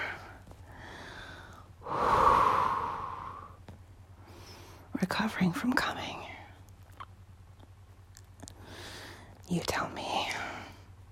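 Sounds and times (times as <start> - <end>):
person gasping for air: 0.7 - 3.6
speech: 5.0 - 6.3, 9.5 - 10.4.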